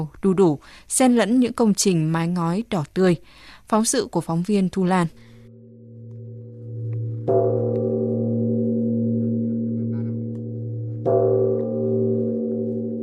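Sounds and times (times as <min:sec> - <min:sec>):
speech: 0:00.0 - 0:05.3
steady low drone: 0:05.2 - 0:13.0
temple bell ringing: 0:05.2 - 0:13.0.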